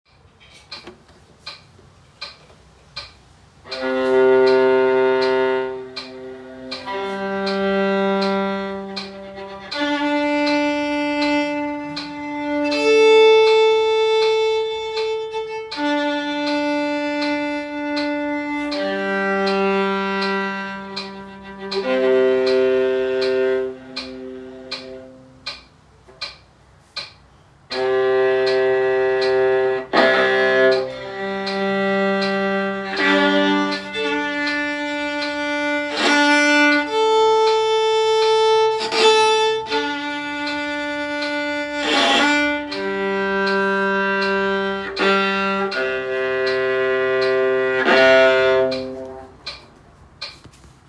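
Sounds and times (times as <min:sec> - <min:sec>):
viola tone: 0:03.6 - 0:25.7, 0:27.7 - 0:50.4.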